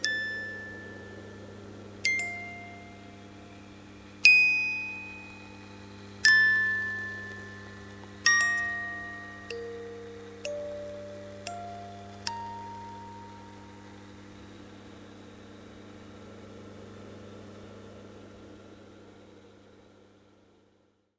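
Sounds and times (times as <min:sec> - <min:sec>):
music box: 0:00.0 - 0:14.3.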